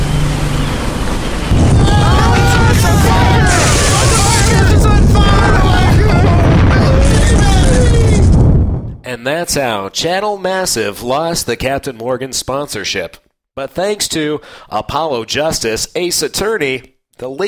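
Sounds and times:
speedboat racing in and crashing: 0.0s - 6.7s
yell-like tones: 1.5s - 8.3s
speech: 9.5s - 17.4s.

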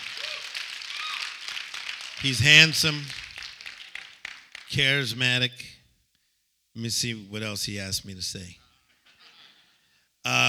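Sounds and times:
audience clapping: 0.0s - 5.2s
speech: 2.2s - 3.2s, 4.7s - 5.7s, 6.8s - 8.6s.

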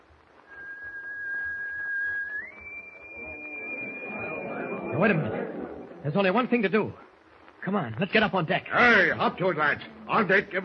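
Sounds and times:
eerie whistle on a ship: 0.4s - 5.8s
speech: 5.0s - 5.4s, 6.0s - 7.0s, 7.6s - 10.6s.

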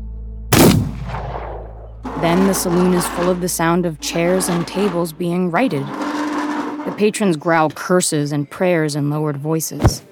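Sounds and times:
gunshot: 0.5s - 1.9s
speech: 2.2s - 6.0s, 6.8s - 10.1s.

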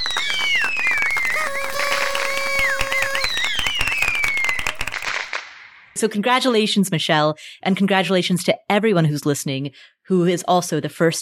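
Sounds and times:
round of applause sound effect: 0.0s - 5.5s
speech: 6.0s - 11.2s.

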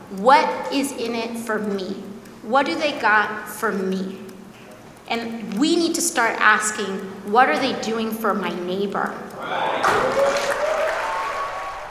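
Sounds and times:
speech: 0.1s - 4.2s, 5.1s - 10.6s
wild applause from rally crowd: 9.6s - 11.8s.

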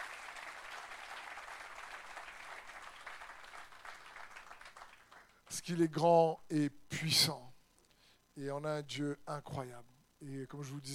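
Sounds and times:
church congregation applauding in praise during a worship service: 0.0s - 5.6s
speech: 5.6s - 7.5s, 8.4s - 10.9s.

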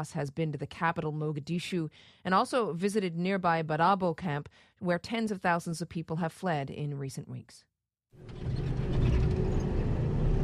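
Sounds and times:
speech: 0.0s - 8.7s
armored vehicle with mounted machine guns travelling near Mogadishu, engine rumble: 8.2s - 10.4s.

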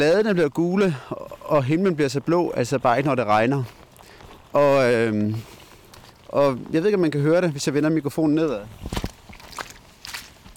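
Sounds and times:
speech: 0.0s - 3.8s, 4.5s - 5.6s, 6.3s - 9.0s
squelchy footsteps through mud: 0.0s - 10.5s.

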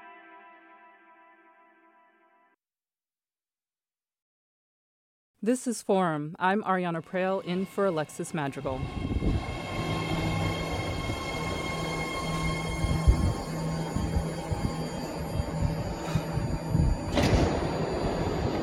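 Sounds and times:
speech: 5.4s - 9.1s
BART rapid transit train arriving in the Bay Area: 7.0s - 18.6s
BART train doors sliding: 13.0s - 18.6s.

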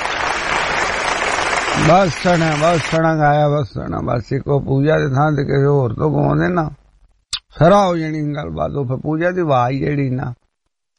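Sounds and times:
applause for young men who have just sung: 0.0s - 3.0s
speech: 1.8s - 6.8s, 7.6s - 10.4s.

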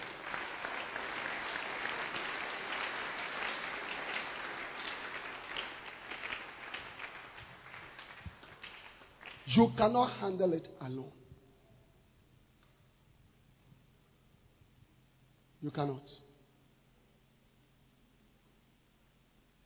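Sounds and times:
audience applause: 0.0s - 9.5s
speech: 9.5s - 11.2s, 15.6s - 16.3s.

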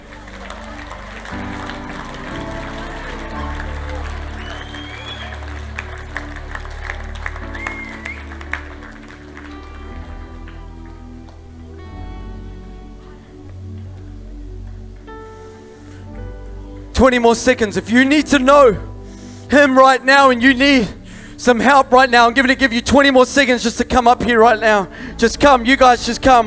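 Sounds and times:
audience applause: 0.0s - 13.3s
sustained low musical chords: 0.0s - 26.4s
speech: 17.0s - 18.9s, 19.5s - 26.4s.

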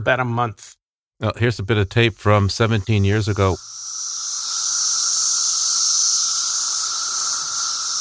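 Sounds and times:
speech: 0.0s - 3.8s
Brood X periodical cicadas buzzing: 2.6s - 8.0s.

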